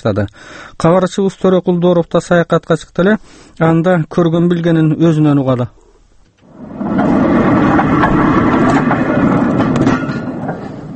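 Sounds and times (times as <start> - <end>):
speech: 0.0 - 5.8
faint rhythmic rail clatter: 6.4 - 10.9
train rolling along the Trans-Siberian Railway: 6.4 - 10.9.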